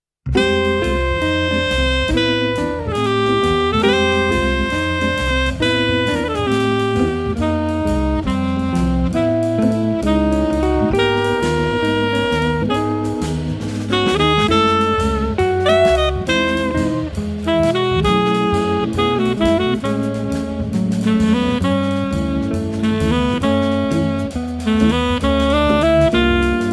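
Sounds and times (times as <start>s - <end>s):
night waltz music: 0.3s - 26.7s.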